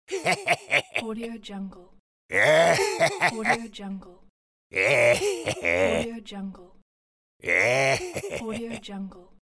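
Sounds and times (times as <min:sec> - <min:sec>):
old man laughing: 0:00.1 - 0:01.0, 0:02.7 - 0:03.4, 0:05.0 - 0:05.8, 0:07.6 - 0:08.5.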